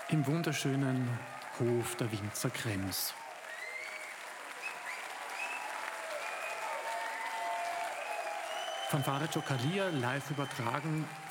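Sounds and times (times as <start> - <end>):
crowd applause and cheering for a band at a festival in the Winzer Krems winery courtyard: 0.0 - 11.2
speech: 0.1 - 3.2, 8.9 - 11.2
thin whistles: 3.5 - 7.4, 8.0 - 11.2.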